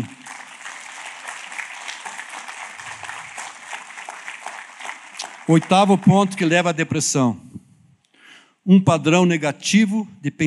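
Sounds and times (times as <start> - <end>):
applause: 0.0 - 7.0
speech: 5.5 - 7.5, 8.7 - 10.4.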